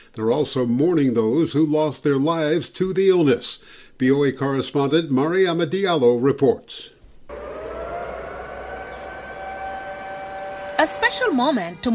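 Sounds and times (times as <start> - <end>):
speech: 0.1 - 7.4, 10.8 - 11.9
car horns: 7.3 - 11.9
low rumble: 7.3 - 11.9.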